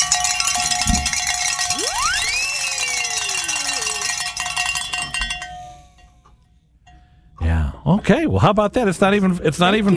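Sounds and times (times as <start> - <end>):
bells ringing: 0.0 - 6.3
speech: 8.0 - 9.9.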